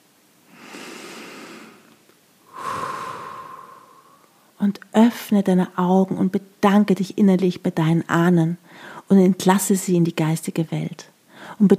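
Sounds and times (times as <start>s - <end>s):
deep breath in and out at the close of a guided meditation: 0.5s - 4.6s, 8.7s - 9.0s, 11.3s - 11.6s
speech: 4.6s - 11.7s.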